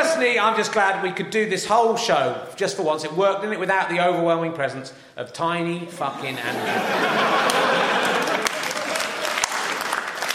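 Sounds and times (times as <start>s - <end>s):
speech: 0.2s - 8.0s
crowd chuckling: 6.1s - 9.8s
crowd applause at a live comedy show: 6.2s - 10.3s.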